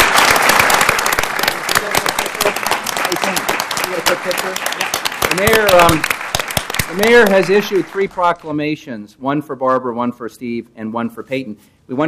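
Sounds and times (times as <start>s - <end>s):
applause: 0.0s - 8.4s
speech: 4.2s - 6.2s, 6.9s - 12.0s.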